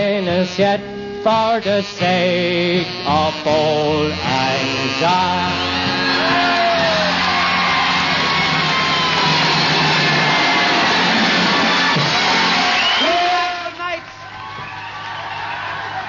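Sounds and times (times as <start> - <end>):
speech: 0.1 - 6.5
audience cheering and applause: 5.7 - 16.0.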